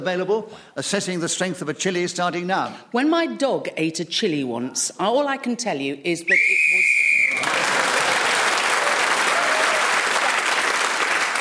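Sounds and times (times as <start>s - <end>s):
speech: 0.0s - 6.9s
referee's whistle ending a round: 6.3s - 7.5s
loud applause: 6.8s - 11.3s.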